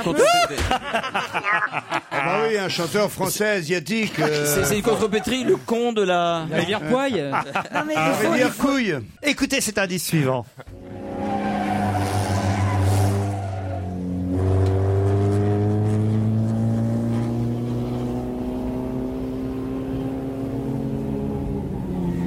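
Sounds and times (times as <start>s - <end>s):
laughter: 0.0s - 2.9s, 3.9s - 5.8s, 6.4s - 8.8s, 10.2s - 10.9s
speech: 0.0s - 10.8s
race car engine roaring through a chicane: 10.7s - 22.2s.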